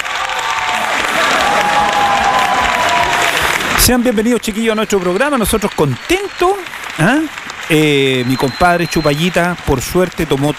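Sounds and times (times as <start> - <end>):
crowd clapping: 0.0 - 10.5
scattered cheers: 0.0 - 10.5
speech: 3.9 - 10.5
faint high whistle-like tone: 8.2 - 9.2.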